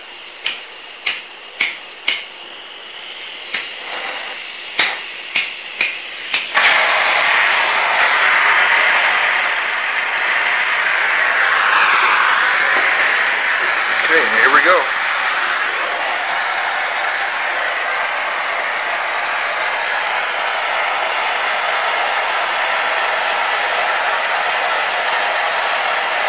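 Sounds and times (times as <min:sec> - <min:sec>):
torch igniter clicks: 0:00.0 - 0:18.3
torch flame roaring while heating a bottle: 0:00.0 - 0:26.2.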